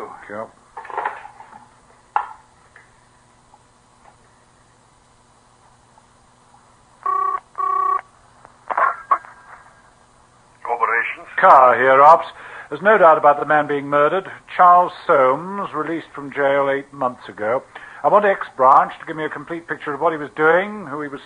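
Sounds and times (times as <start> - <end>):
speech: 0.1 - 0.6, 11.2 - 21.2
telephone being dialed: 7.0 - 8.0.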